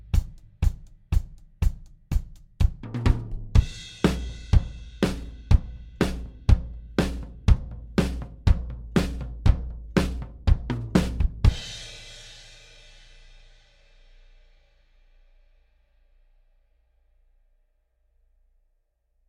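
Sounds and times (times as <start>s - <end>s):
drums playing in a recording session: 0.0s - 12.4s.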